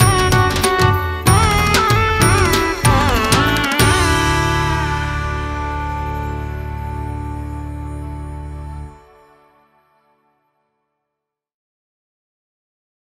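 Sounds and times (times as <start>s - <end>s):
Indian classical version of a Christmas song: 0.0s - 10.5s.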